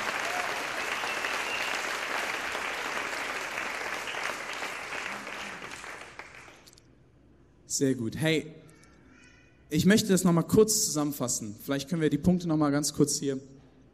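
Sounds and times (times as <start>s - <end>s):
audience applause: 0.0s - 6.7s
speech: 7.8s - 8.6s, 9.7s - 13.6s.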